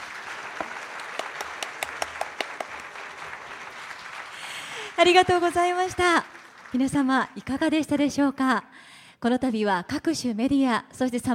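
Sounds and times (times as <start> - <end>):
audience applause: 0.0 - 7.5
speech: 5.0 - 11.3.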